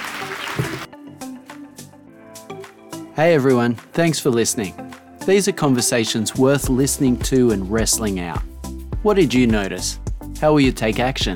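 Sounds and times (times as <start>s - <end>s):
audience applause: 0.0s - 0.9s
music with a steady rhythmic beat: 0.1s - 4.0s, 4.6s - 5.3s, 6.4s - 11.3s
speech: 3.2s - 11.3s.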